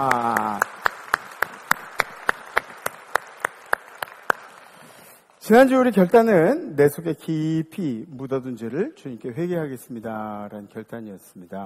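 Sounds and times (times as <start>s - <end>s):
speech: 0.0s - 0.2s, 5.5s - 11.6s
audience clapping in unison: 0.0s - 5.4s.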